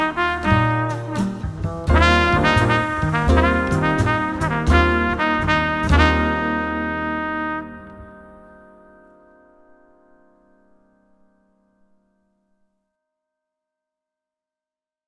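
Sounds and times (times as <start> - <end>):
slow music: 0.0 - 12.0.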